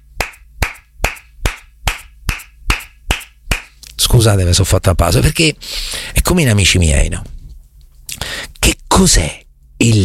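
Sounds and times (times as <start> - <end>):
one person clapping hands: 0.2 - 3.8
speech: 4.1 - 7.4, 9.0 - 10.0.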